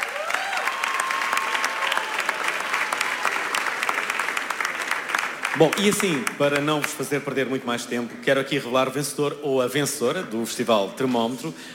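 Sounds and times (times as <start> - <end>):
audience applause: 0.0 - 7.0
speech: 5.6 - 11.7.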